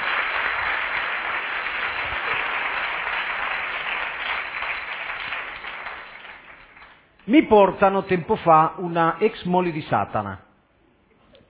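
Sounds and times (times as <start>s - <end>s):
audience applause: 0.0s - 7.2s
speech: 7.3s - 10.4s.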